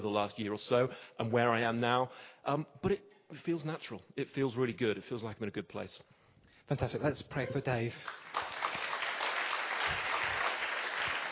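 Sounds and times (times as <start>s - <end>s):
speech: 0.0s - 8.5s
audience clapping: 8.0s - 11.3s.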